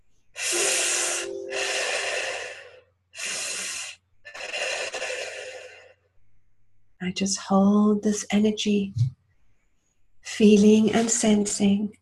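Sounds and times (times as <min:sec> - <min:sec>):
person exhaling forcefully: 0:00.4 - 0:05.9
person inhaling through a straw: 0:00.4 - 0:06.0
speech: 0:07.0 - 0:09.2, 0:10.4 - 0:12.0.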